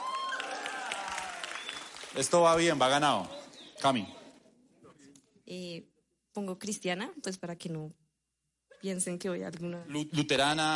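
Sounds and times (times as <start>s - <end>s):
applause: 0.0s - 2.9s
speech: 2.2s - 4.2s, 5.5s - 8.0s, 8.8s - 10.7s.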